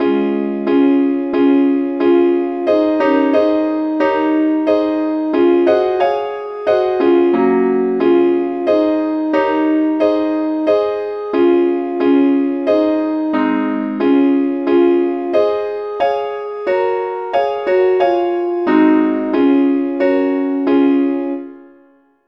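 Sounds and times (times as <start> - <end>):
melody in D flat: 0.0 - 22.0.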